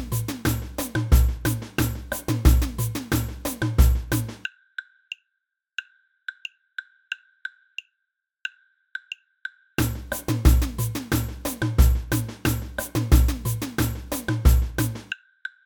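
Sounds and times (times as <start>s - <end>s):
samba band block: 0.0s - 4.4s, 9.8s - 15.1s.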